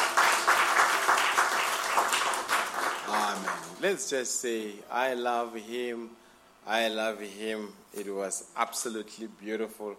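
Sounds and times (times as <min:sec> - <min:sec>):
audience applause: 0:00.0 - 0:03.8
speech: 0:03.8 - 0:09.9.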